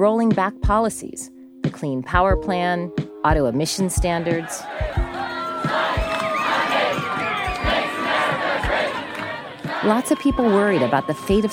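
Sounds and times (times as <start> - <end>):
speech: 0.0 - 5.2, 9.8 - 11.5
dull thumping beat: 0.3 - 1.0, 1.6 - 9.0, 9.6 - 11.5
large outdoor crowd chanting and shouting at a science march: 4.0 - 11.5.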